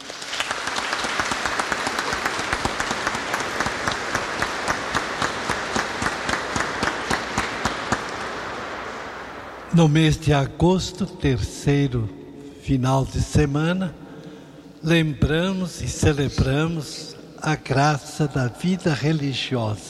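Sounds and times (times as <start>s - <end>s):
audience applause: 0.0s - 9.6s
speech: 9.8s - 14.0s, 14.8s - 19.8s.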